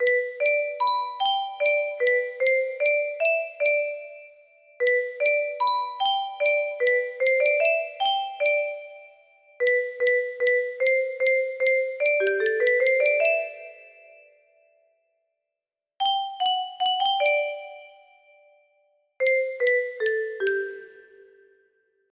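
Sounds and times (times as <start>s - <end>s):
music box melody: 0.0s - 14.3s, 16.0s - 18.4s, 19.2s - 21.4s.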